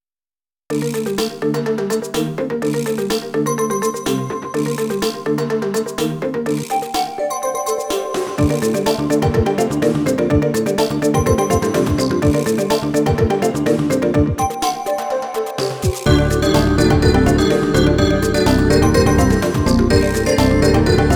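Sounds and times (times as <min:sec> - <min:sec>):
ethnic music: 0:00.7 - 0:21.1.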